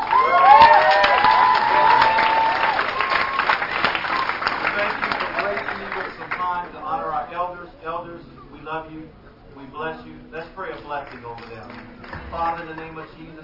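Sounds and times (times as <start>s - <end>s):
whoops and cheers: 0.0s - 4.5s
audience applause: 0.0s - 6.8s, 11.1s - 13.4s.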